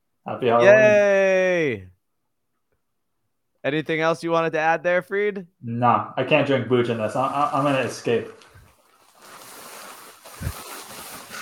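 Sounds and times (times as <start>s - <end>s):
speech: 0.3s - 1.9s, 3.6s - 8.5s
rustling of a cheap costume: 7.7s - 11.4s.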